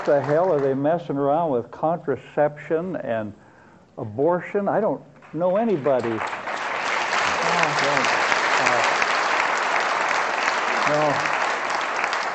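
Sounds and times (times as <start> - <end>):
crowd applauding: 0.0 - 0.8, 5.2 - 12.3
speech: 0.0 - 3.4, 4.0 - 6.4.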